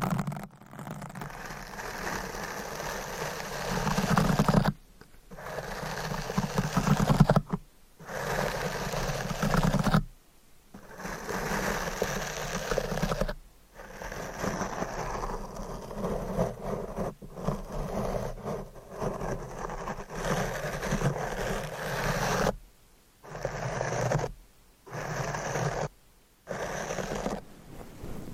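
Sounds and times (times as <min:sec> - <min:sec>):
scratching, tapping and brushing against a surface: 0:00.0 - 0:10.1, 0:10.8 - 0:22.6, 0:23.2 - 0:25.9, 0:26.5 - 0:27.4.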